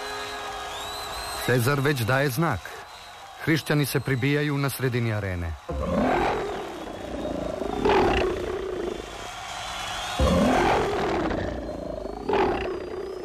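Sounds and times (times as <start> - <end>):
speech: 1.5 - 2.9, 3.5 - 6.1
lions roaring in an arena: 5.7 - 9.0, 10.2 - 13.2.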